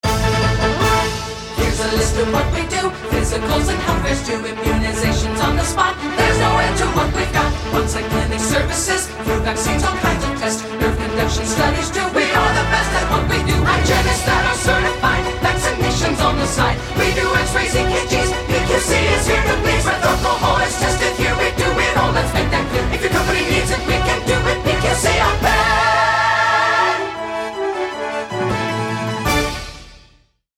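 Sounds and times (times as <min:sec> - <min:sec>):
jingle: 0:00.0 - 0:30.2.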